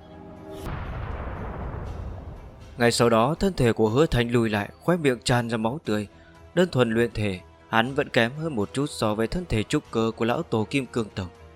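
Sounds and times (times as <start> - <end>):
thundering explosion sound effect: 0.6 - 3.1
speech: 2.8 - 11.4.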